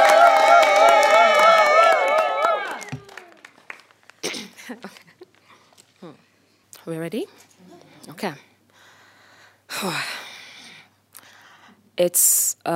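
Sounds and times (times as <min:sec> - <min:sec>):
audience cheering: 0:00.0 - 0:03.8
audience applause: 0:00.0 - 0:04.7
speech: 0:07.1 - 0:07.5, 0:08.1 - 0:08.5, 0:09.8 - 0:10.2, 0:12.0 - 0:12.7.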